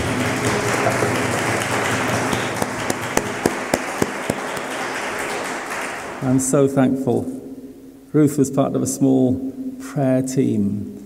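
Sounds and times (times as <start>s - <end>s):
crowd clapping: 0.0s - 6.7s
speech: 6.3s - 7.4s, 8.1s - 11.0s.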